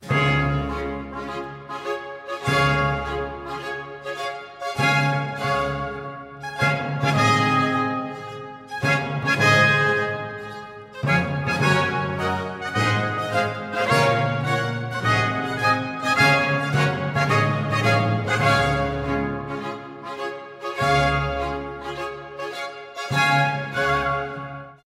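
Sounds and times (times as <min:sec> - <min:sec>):
baroque piece on trumpet: 0:00.0 - 0:24.8.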